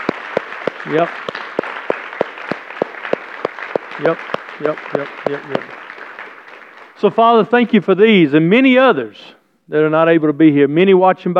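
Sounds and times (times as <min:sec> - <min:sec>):
sharp evenly spaced claps: 0:00.0 - 0:07.1
crowd applauding: 0:00.0 - 0:07.5
speech: 0:00.8 - 0:01.4, 0:04.0 - 0:05.8, 0:07.0 - 0:11.3.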